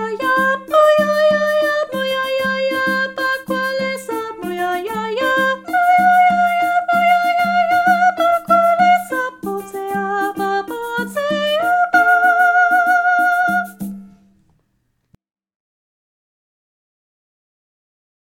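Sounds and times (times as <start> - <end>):
soprano singing: 0.0 - 14.0.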